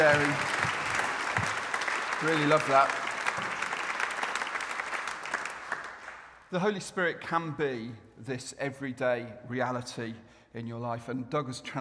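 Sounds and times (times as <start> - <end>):
speech: 0.0 - 0.6, 2.2 - 3.5, 6.5 - 11.8
audience applause: 0.0 - 6.4.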